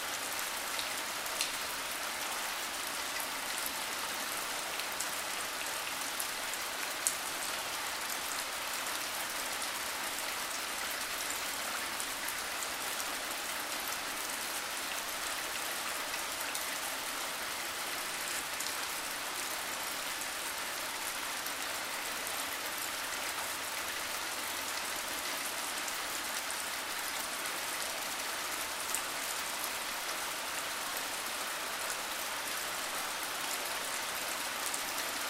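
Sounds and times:
rain: 0:00.0 - 0:35.2.

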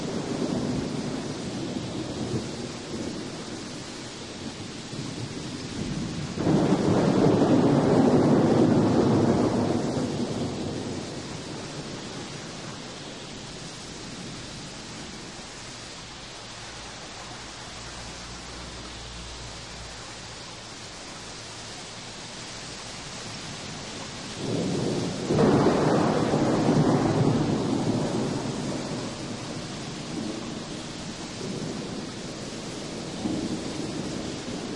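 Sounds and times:
thunder: 0:00.0 - 0:14.4, 0:23.5 - 0:34.7
torrential rain: 0:00.0 - 0:34.7.

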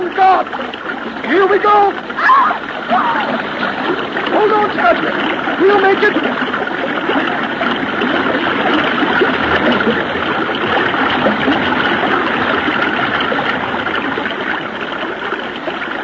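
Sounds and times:
river current: 0:00.0 - 0:16.0
speech: 0:00.3 - 0:06.7.

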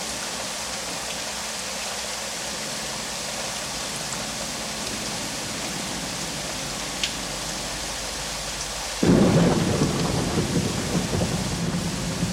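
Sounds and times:
light and heavy rain: 0:00.0 - 0:12.3
thunder: 0:09.0 - 0:12.3.

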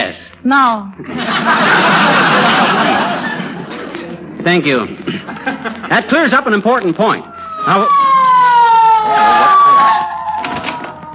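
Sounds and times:
rough noise: 0:00.0 - 0:11.1
speech: 0:00.4 - 0:02.9, 0:04.4 - 0:08.1
laughter: 0:01.0 - 0:06.3
police car siren winding down: 0:06.0 - 0:11.1.

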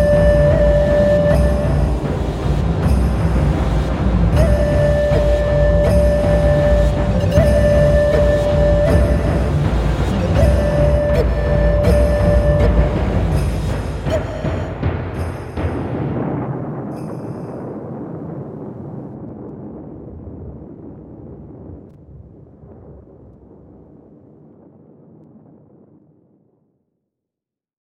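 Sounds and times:
drums: 0:00.0 - 0:19.6.

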